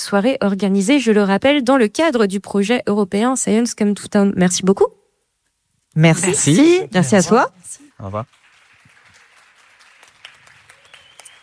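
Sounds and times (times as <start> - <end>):
speech: 0.0 - 5.0, 6.0 - 8.4
audience applause: 8.0 - 11.4.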